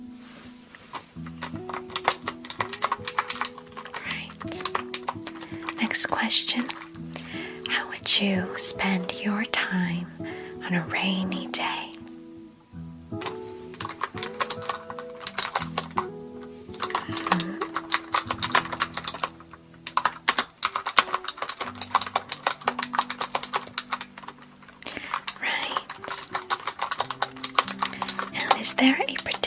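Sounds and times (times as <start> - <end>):
soft music: 0.0 - 29.4
typing on a clicky computer keyboard: 1.2 - 7.8, 13.2 - 29.4
speech: 6.2 - 6.8, 8.1 - 11.7.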